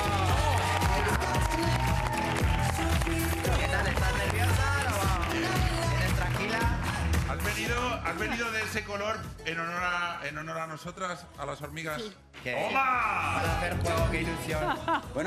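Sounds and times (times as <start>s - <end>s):
voices and tonal cheers: 0.0s - 5.2s
studio audience applause: 0.0s - 8.8s
speech: 8.7s - 15.2s.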